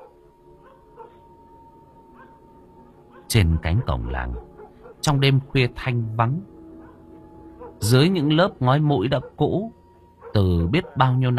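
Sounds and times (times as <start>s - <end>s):
dogs barking and howling at night on a village road: 0.0s - 11.3s
speech: 3.3s - 6.5s, 7.8s - 11.3s.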